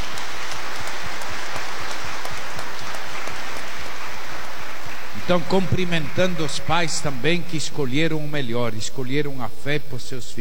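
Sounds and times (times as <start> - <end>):
applause: 0.0 - 8.1
speech: 5.3 - 10.4.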